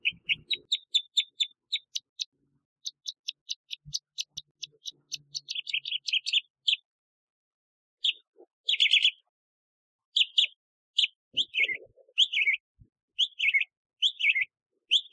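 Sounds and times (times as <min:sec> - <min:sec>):
northern mockingbird Mimus polyglottos song: 0:00.0 - 0:07.0, 0:08.0 - 0:09.3, 0:10.1 - 0:15.1.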